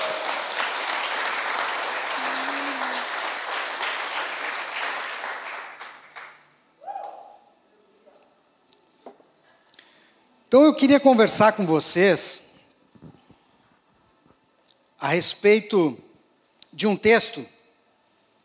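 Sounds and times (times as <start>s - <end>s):
applause: 0.0s - 6.5s
speech: 10.5s - 12.4s, 15.1s - 16.0s, 16.8s - 17.6s.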